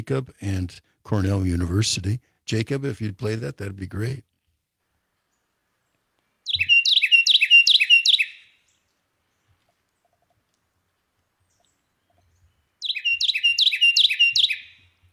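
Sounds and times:
speech: 0:00.0 - 0:04.3
Carolina Wren singing loud rolling songs: 0:06.4 - 0:08.8, 0:11.5 - 0:15.1.

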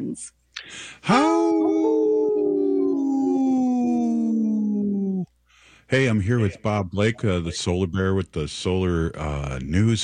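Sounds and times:
speech: 0:00.0 - 0:02.1, 0:05.9 - 0:10.0
people howling like wolves: 0:01.1 - 0:05.3.

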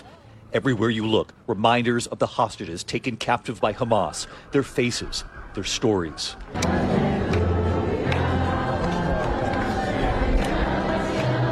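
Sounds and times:
speech: 0:00.5 - 0:07.1
crowd quietly singing a hymn: 0:06.3 - 0:11.4.

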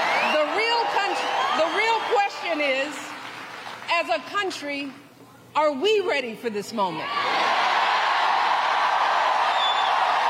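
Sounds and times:
rowdy crowd cheering in Kalamazoo: 0:00.0 - 0:03.8, 0:07.0 - 0:10.2
speech: 0:04.0 - 0:07.3
high whistle: 0:09.5 - 0:10.0.

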